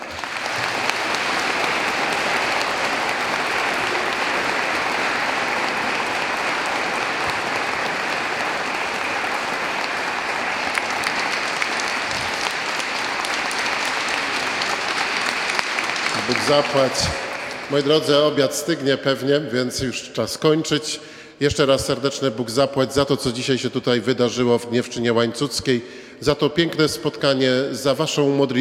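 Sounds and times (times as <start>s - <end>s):
large audience applause: 0.0s - 18.4s
speech: 16.5s - 28.6s.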